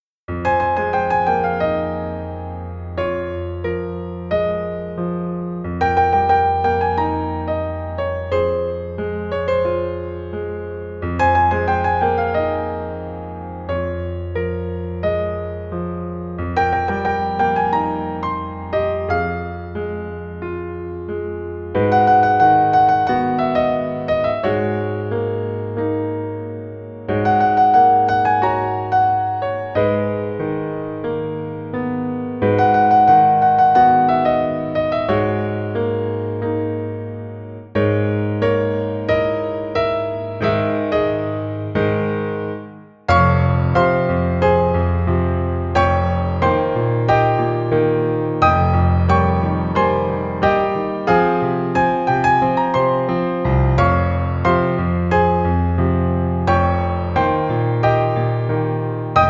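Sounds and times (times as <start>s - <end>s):
piano arrangement: 0.2s - 59.2s.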